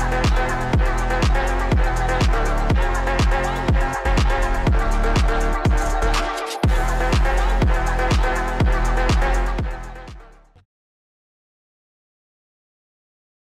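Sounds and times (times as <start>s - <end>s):
phonk music: 0.0s - 10.6s.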